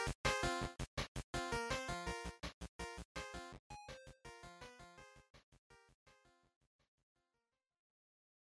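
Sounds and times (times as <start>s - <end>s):
Game Boy fighting match music: 0.0s - 6.0s.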